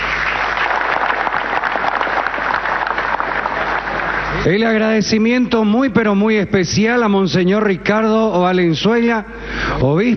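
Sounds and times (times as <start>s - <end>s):
audience applause: 0.0s - 4.5s
speech: 4.4s - 10.1s.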